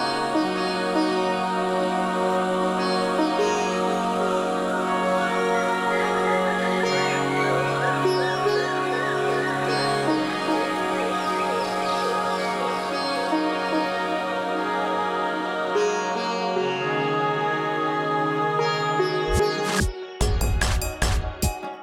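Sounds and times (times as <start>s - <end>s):
jungle-themed music with sustained tones over low bass: 0.0s - 21.8s
sharp loud percussive hits: 19.3s - 21.8s.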